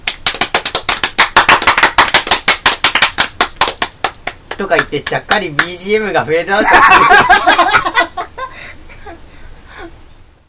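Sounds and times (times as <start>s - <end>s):
applause: 0.0s - 5.7s
speech: 4.6s - 8.1s
laughter: 6.5s - 9.2s.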